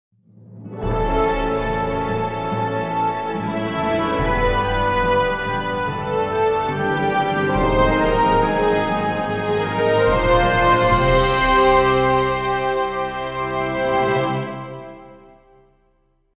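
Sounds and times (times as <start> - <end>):
positive jingle: 0.8 - 14.8.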